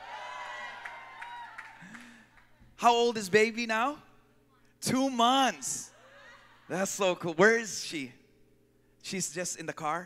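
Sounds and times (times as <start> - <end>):
audience cheering and whooping: 0.0 - 2.1, 6.0 - 6.7
sharp claps: 0.8 - 2.5
speech: 2.8 - 4.1, 4.8 - 5.9, 6.7 - 8.2, 9.0 - 10.0.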